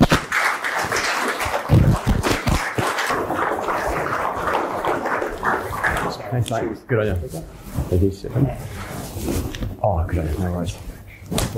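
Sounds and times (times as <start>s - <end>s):
audience applause: 0.0s - 6.5s
speech: 6.4s - 11.5s.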